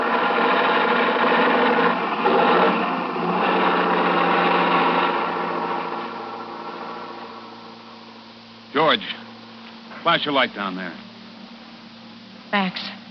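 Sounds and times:
truck engine labouring up a hill: 0.0 - 8.2
speech: 10.0 - 11.1, 12.5 - 12.9.

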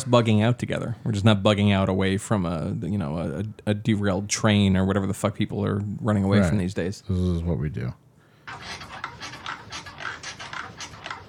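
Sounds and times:
speech: 0.0 - 8.8
squeaky bed sound effect: 8.5 - 11.2.

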